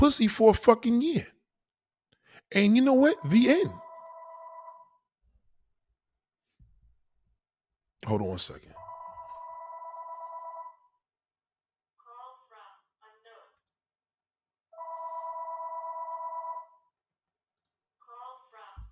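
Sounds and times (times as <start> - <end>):
speech: 0.0 - 1.4, 2.5 - 3.8, 8.0 - 8.8
phone ringtone with buzzing tone and warbling melodic bursts: 2.6 - 5.0, 8.8 - 10.9, 14.8 - 16.8.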